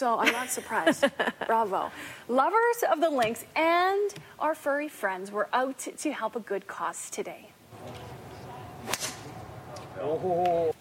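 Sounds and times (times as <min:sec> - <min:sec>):
speech: 0:00.0 - 0:08.0, 0:10.0 - 0:10.7
golf club swing at a charity golf tournament: 0:08.8 - 0:09.4.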